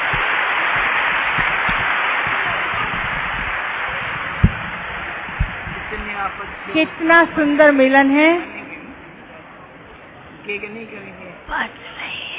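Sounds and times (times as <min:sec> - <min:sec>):
audience clapping loudly: 0:00.0 - 0:07.6
speech: 0:06.4 - 0:08.6, 0:10.5 - 0:11.9.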